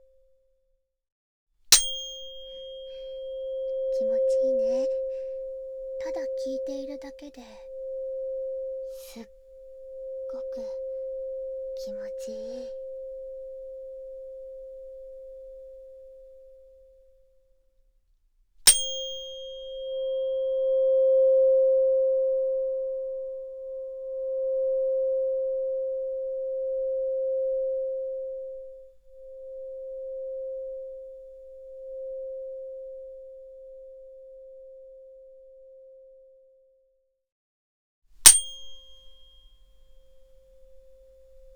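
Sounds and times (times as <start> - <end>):
tuning fork tone at Solfeggio frequency: 1.7 - 17.6, 18.7 - 36.9, 38.2 - 41.5
speech: 4.0 - 5.0, 6.4 - 7.7, 9.2 - 9.4, 10.6 - 10.8, 11.9 - 12.8.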